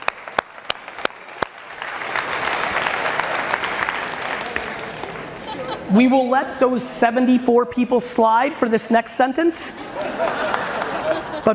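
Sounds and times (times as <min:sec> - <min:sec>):
audience clapping: 0:00.0 - 0:05.8, 0:09.9 - 0:11.4
laughter: 0:04.4 - 0:06.5, 0:09.6 - 0:11.5
speech: 0:05.9 - 0:10.0.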